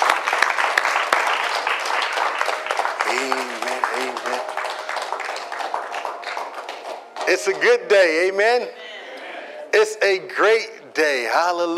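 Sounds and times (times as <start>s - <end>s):
crowd applause: 0.0s - 8.3s
speech: 7.3s - 8.8s, 9.8s - 11.7s.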